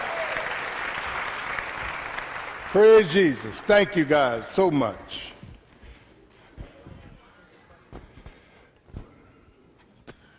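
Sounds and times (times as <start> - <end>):
round of applause: 0.0 - 4.5
speech: 2.7 - 5.3.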